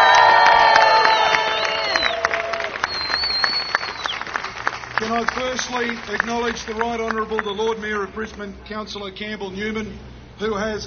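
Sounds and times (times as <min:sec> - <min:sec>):
crowd cheering and applause: 0:00.0 - 0:07.6
speech: 0:05.2 - 0:10.8.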